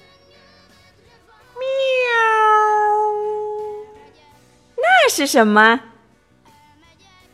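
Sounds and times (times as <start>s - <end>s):
cat meowing: 1.6s - 4.1s, 4.8s - 5.9s
speech: 5.2s - 5.9s.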